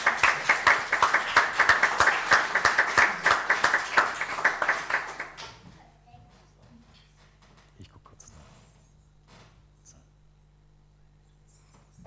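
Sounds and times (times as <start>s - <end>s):
audience clapping: 0.0s - 5.8s.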